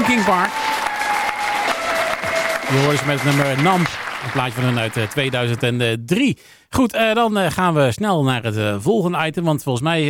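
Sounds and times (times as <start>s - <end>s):
audience applause: 0.0s - 5.8s
speech: 0.1s - 0.7s, 2.7s - 10.0s.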